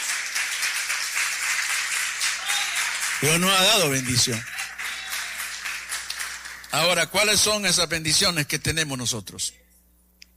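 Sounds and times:
crowd clapping: 0.0s - 7.1s
speech: 3.2s - 4.5s, 6.8s - 9.7s.

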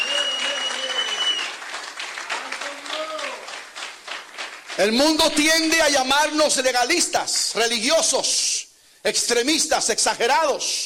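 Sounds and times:
audience applauding: 0.0s - 5.9s
speech: 4.8s - 10.8s.

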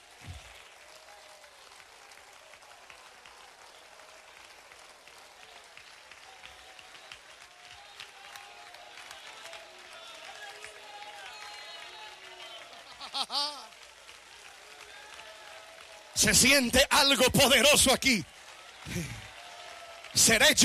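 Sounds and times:
audience applause: 0.0s - 20.6s
laughter: 12.4s - 13.8s, 18.9s - 19.3s
speech: 13.2s - 13.7s, 16.2s - 18.3s, 20.2s - 20.6s.

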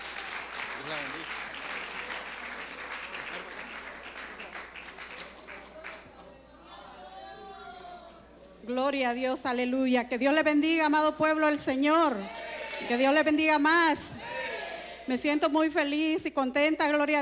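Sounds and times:
audience applause: 0.0s - 6.0s
speech: 8.7s - 14.2s, 15.1s - 17.2s.

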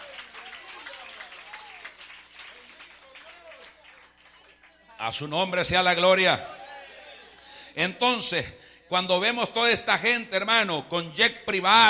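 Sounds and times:
church audience applauding: 0.0s - 4.8s
speech: 5.0s - 6.6s, 7.8s - 11.8s.

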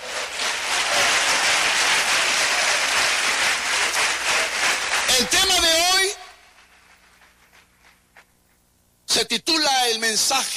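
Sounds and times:
audience applause: 0.0s - 6.0s
speech: 5.2s - 5.5s, 9.3s - 10.5s.

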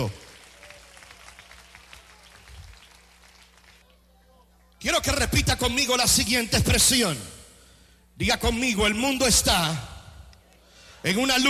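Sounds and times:
speech: 0.0s - 0.2s, 5.0s - 7.4s, 8.2s - 9.9s, 11.0s - 11.4s
audience applause: 0.0s - 4.0s.

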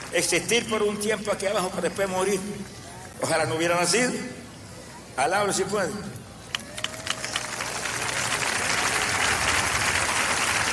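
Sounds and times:
speech: 0.2s - 4.4s, 5.2s - 6.2s
audience applauding: 6.5s - 10.7s.

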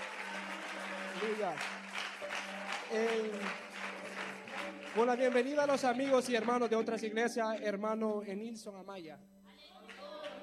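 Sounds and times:
church congregation clapping softly during a worship service: 0.0s - 5.8s
speech: 1.2s - 3.7s, 4.9s - 9.4s.

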